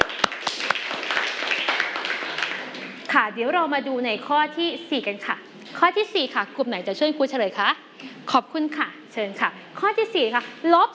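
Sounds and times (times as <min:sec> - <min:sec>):
classroom clapping: 0:00.0 - 0:03.1
speech: 0:03.1 - 0:10.9.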